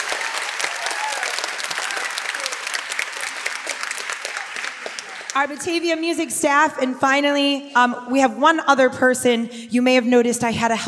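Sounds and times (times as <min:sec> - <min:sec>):
audience applause: 0:00.0 - 0:05.6
speech: 0:05.4 - 0:10.8.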